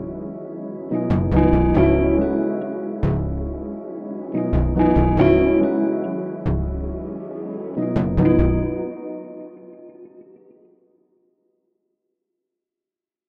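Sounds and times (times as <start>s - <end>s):
MIDI music: 0.0s - 10.2s.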